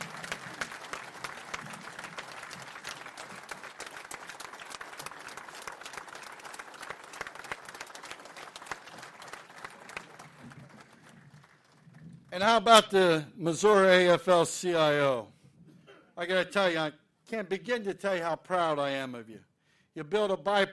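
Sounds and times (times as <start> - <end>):
audience applause: 0.0 - 12.4
speech: 12.4 - 15.3, 16.2 - 20.7.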